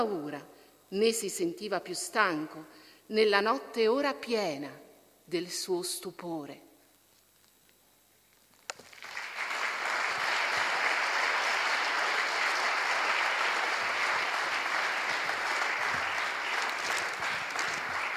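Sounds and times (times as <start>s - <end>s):
speech: 0.0s - 6.6s
audience applause: 8.8s - 18.1s.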